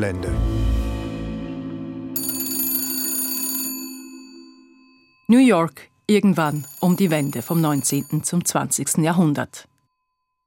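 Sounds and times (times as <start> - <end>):
speech: 0.0 - 0.4, 5.3 - 9.7
telephone ringing in Hotel Waldorf Astoria: 2.2 - 5.3, 6.3 - 9.5.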